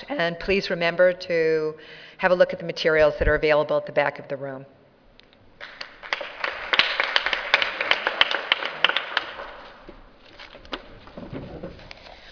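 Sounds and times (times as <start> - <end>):
speech: 0.0 - 4.8
applause for a panel: 5.6 - 9.8.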